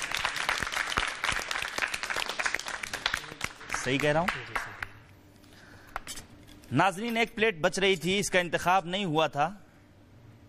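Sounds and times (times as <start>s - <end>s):
audience applause: 0.0s - 5.0s
speech: 3.8s - 4.5s, 6.7s - 9.6s.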